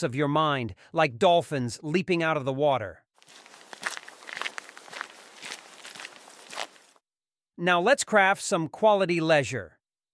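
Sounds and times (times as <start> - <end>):
speech: 0.0 - 3.4, 7.6 - 9.8
footsteps walking: 3.2 - 7.0.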